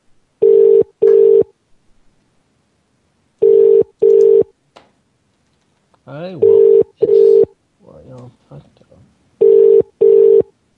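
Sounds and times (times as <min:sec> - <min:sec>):
ringback tone of an unanswered telephone call: 0:00.4 - 0:01.5, 0:03.4 - 0:04.5, 0:06.4 - 0:07.5, 0:09.4 - 0:10.5
speech: 0:06.1 - 0:06.6.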